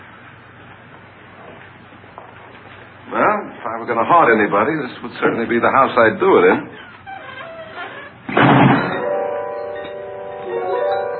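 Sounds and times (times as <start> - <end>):
speech: 3.1 - 6.8
heavy door slamming shut: 8.0 - 9.1.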